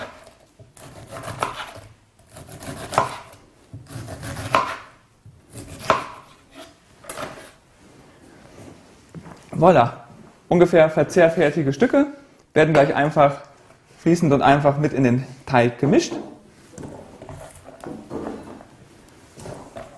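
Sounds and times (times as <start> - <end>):
knife chopping food into small cubes: 0.0 - 7.5
speech: 9.6 - 16.3.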